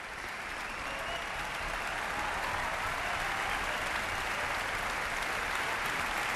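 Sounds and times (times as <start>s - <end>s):
concert hall applause: 0.0s - 6.3s.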